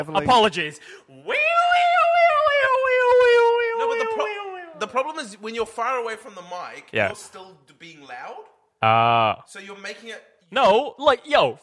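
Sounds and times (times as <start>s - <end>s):
speech: 0.0s - 1.5s, 4.8s - 11.6s
person vocally imitating a passing siren Doppler effect: 1.3s - 4.9s, 8.8s - 9.4s.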